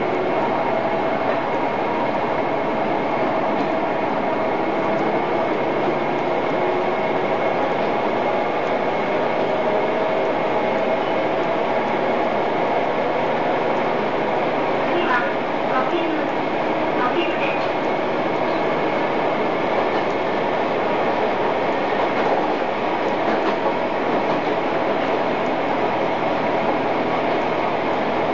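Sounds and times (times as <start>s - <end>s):
Kantetsu 2100 series train motor: 0.0s - 28.3s.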